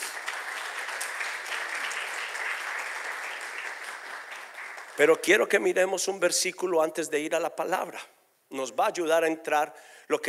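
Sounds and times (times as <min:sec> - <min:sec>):
audience applause: 0:00.0 - 0:05.2
speech: 0:05.0 - 0:10.2.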